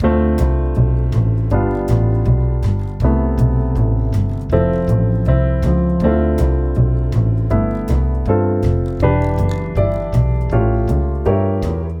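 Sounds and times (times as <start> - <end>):
jazz music: 0.0 - 11.9.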